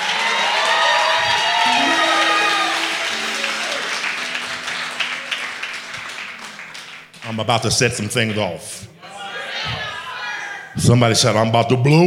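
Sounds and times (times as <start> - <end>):
audience clapping and cheering: 0.0 - 8.4
speech: 7.3 - 8.9, 10.8 - 12.0.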